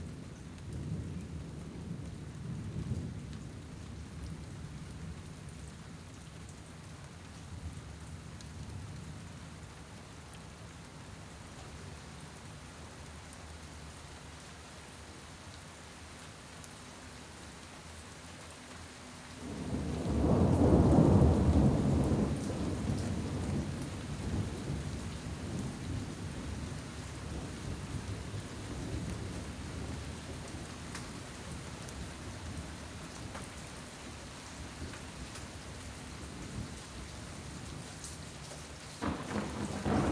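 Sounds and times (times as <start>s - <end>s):
thunderstorm: 0.6s - 5.5s, 19.4s - 32.8s, 39.0s - 40.1s.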